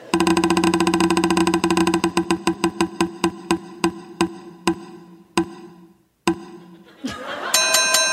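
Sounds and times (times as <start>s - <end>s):
prize wheel spinning with ticking clicks: 0.2s - 6.6s
laughter: 6.6s - 7.7s.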